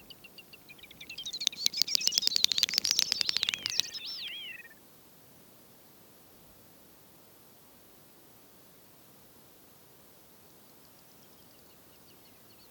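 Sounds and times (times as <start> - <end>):
great snipe Gallinago media display bubbling chatter and clicks: 0.8 - 4.8.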